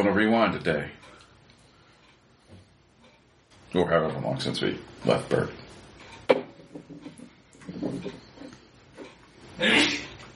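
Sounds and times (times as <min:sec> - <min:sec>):
speech: 0:00.0 - 0:01.1, 0:03.7 - 0:05.6, 0:07.8 - 0:08.2, 0:09.6 - 0:10.3
sneeze: 0:09.6 - 0:10.2.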